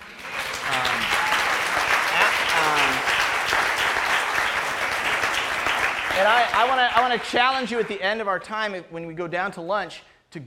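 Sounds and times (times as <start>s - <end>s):
audience applause: 0.0s - 8.0s
speech: 6.2s - 10.4s.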